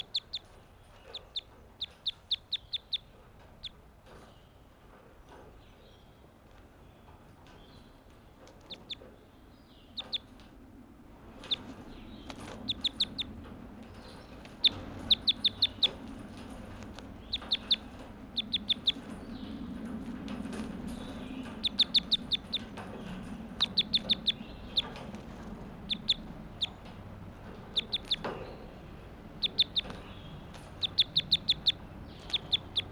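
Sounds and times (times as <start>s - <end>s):
bird calling in sharp high-pitched chirps: 0.0s - 3.8s, 8.7s - 10.4s, 11.4s - 32.9s
low steady rumble: 7.6s - 32.9s.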